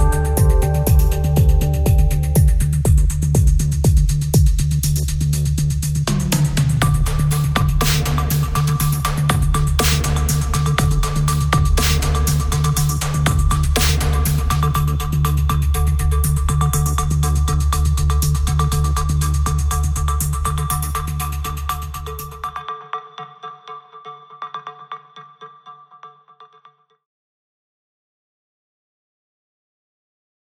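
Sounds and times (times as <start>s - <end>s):
rhythm: 0.0s - 22.5s.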